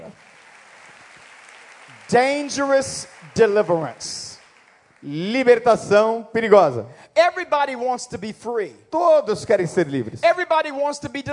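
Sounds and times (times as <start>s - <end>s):
audience applause: 0.0s - 5.6s
speech: 2.1s - 4.3s, 5.0s - 11.3s.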